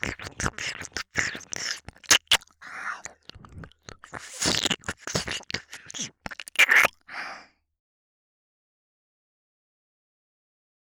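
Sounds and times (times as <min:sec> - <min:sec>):
ASMR ear licking sounds: 0:00.0 - 0:07.1.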